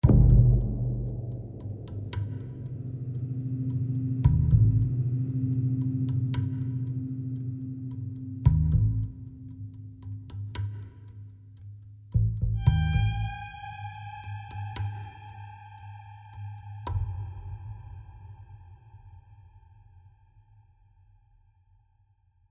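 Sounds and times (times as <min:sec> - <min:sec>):
tension music: 0:00.0 - 0:11.3, 0:12.2 - 0:17.8.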